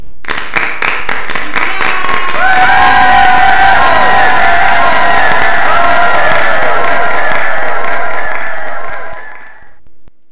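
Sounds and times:
person cheering: 1.5 - 9.7.

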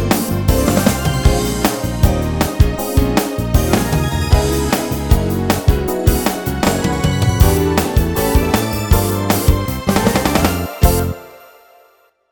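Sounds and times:
melody: 0.2 - 5.5, 6.6 - 12.1.

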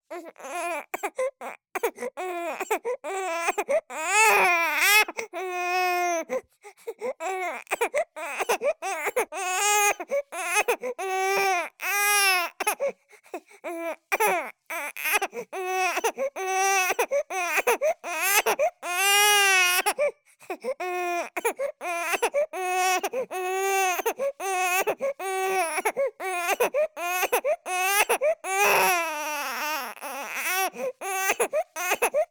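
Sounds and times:
baby crying: 0.1 - 6.4, 7.2 - 13.0, 13.6 - 20.1, 20.8 - 32.3.

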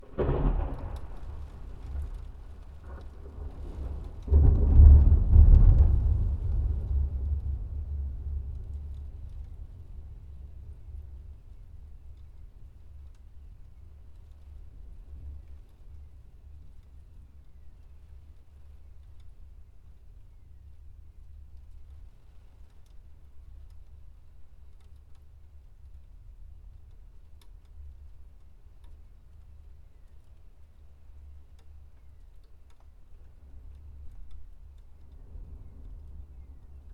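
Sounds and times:
lightning: 0.0 - 13.2
rain: 0.0 - 36.9.

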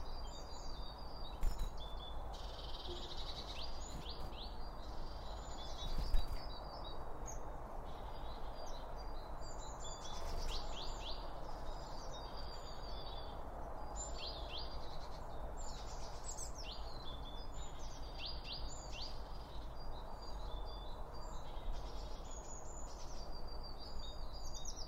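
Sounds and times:
birds chirping and twittering: 0.0 - 24.8.

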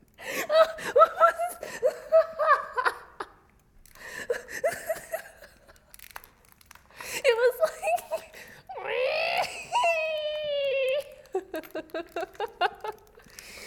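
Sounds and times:
girl laughing: 0.2 - 3.4, 4.3 - 5.9, 7.2 - 13.3.

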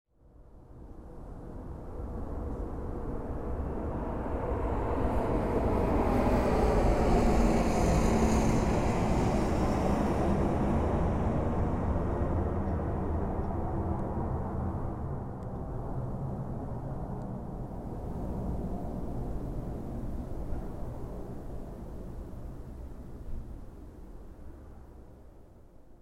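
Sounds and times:
jet aircraft: 0.8 - 24.9.

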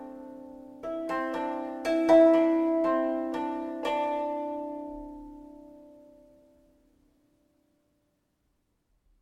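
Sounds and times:
traditional Japanese koto music: 0.0 - 6.9.

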